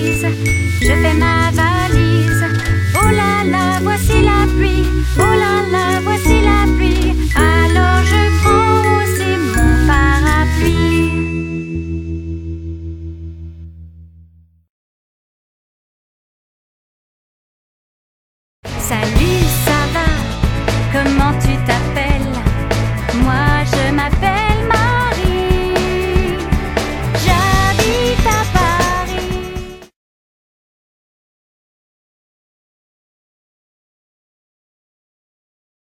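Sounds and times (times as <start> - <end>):
children's songs: 0.0 - 11.6, 18.7 - 29.9.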